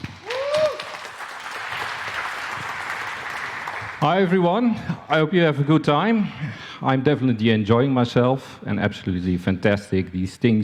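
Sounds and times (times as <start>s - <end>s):
audience applause welcoming a speaker onto the stage at a talk on ransomware: 0.0s - 4.1s
speech: 4.0s - 10.6s.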